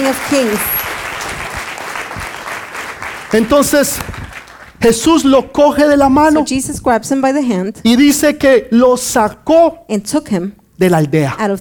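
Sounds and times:
audience applauding: 0:00.0 - 0:04.8
speech: 0:00.1 - 0:00.8, 0:03.3 - 0:04.1, 0:04.8 - 0:11.5.

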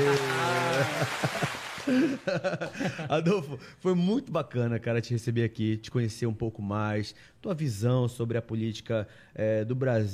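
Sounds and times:
applause sound effect: 0:00.0 - 0:02.3
laughter: 0:00.0 - 0:03.1
speech: 0:01.0 - 0:10.1.

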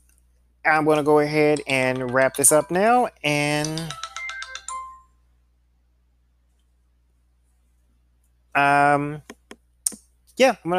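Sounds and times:
speech: 0:00.6 - 0:04.0, 0:08.6 - 0:09.4, 0:10.4 - 0:10.7
mobile phone ringtone: 0:01.6 - 0:05.2.

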